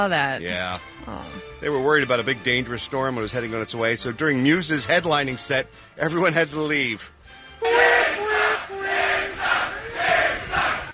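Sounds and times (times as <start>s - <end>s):
speech: 0.0s - 8.2s
festival crowd chanting: 7.6s - 10.9s.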